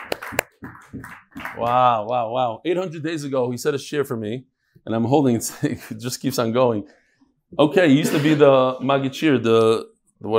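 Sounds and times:
applause: 0.0s - 2.0s
speech: 1.6s - 10.3s.

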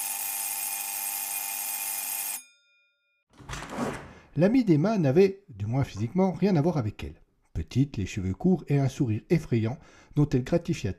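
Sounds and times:
apartment intercom doorbell buzzing: 0.0s - 2.6s
speech: 4.4s - 10.9s.

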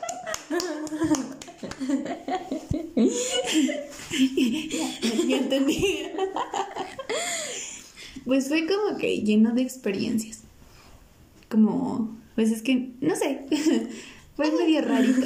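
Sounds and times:
hands clapping: 0.0s - 2.2s
laughter: 0.0s - 7.6s, 13.5s - 15.2s
speech: 8.3s - 10.4s, 11.5s - 15.2s.

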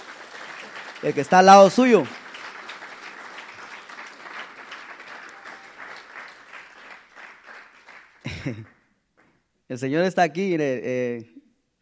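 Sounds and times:
crowd applause: 0.0s - 8.8s
speech: 1.0s - 2.2s, 8.4s - 8.7s, 9.7s - 11.4s
laughter: 8.2s - 8.8s.

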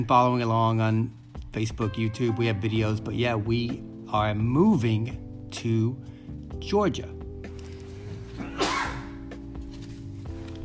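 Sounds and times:
speech: 0.0s - 7.2s
pet sneezing: 8.4s - 9.2s.

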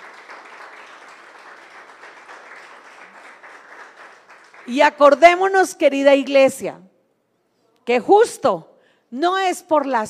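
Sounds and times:
audience applause: 0.0s - 4.8s
speech: 4.7s - 6.8s, 7.9s - 10.0s.

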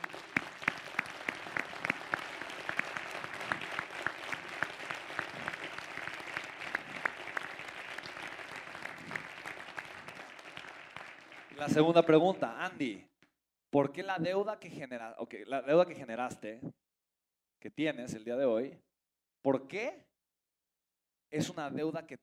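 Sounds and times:
applause: 0.0s - 12.6s
speech: 11.6s - 13.1s, 13.7s - 16.8s, 17.6s - 20.0s, 21.3s - 22.2s.

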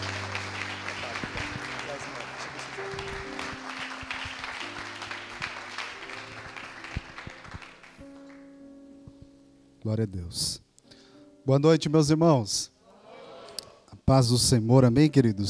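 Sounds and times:
audience applauding: 0.0s - 8.5s
speech: 9.9s - 10.6s, 11.4s - 12.8s, 14.1s - 15.4s.

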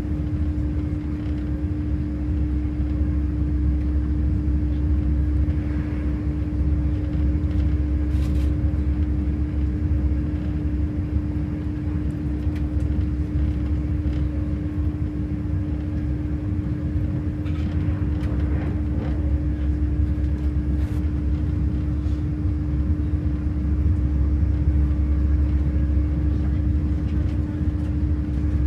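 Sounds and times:
train to Bristol rumbling: 0.0s - 28.6s.

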